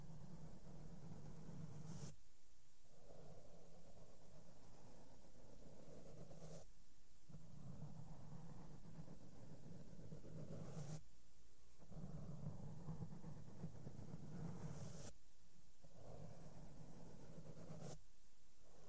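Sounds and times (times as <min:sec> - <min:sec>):
makeup brushes sweeping over a microphone: 0:00.1 - 0:02.2, 0:03.7 - 0:06.7, 0:07.3 - 0:11.1, 0:11.8 - 0:15.2, 0:15.9 - 0:18.1.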